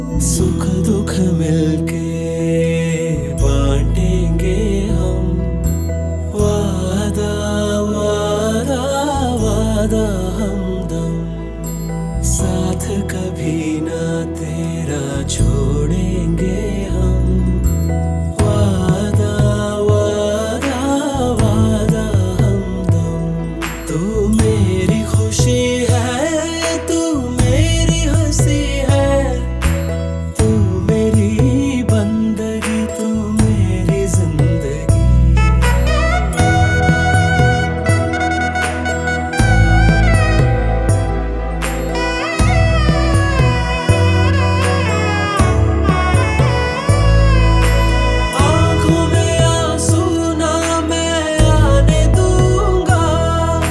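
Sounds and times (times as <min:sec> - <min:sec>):
male vocals: 0:00.2 - 0:53.6.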